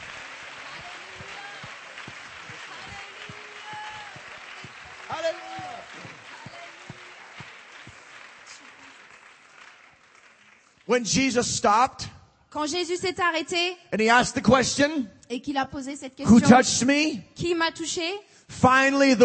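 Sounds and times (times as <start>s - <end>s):
audience clapping hands: 0.0s - 11.7s
speech: 10.9s - 19.2s.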